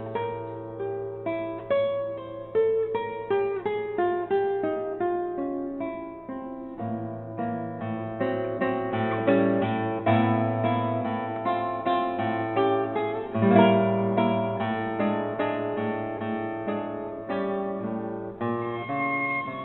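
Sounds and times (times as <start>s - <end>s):
guitar playing a sonata: 0.0s - 19.6s
violin playing a sonata: 18.4s - 19.6s.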